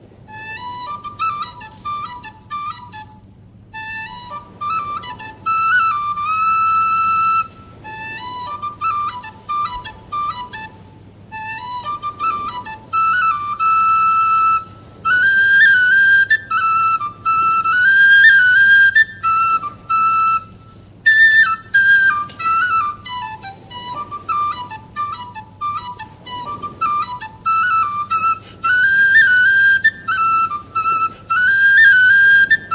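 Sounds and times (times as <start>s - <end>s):
flute playing a seal-calling tune: 0.3s - 32.7s.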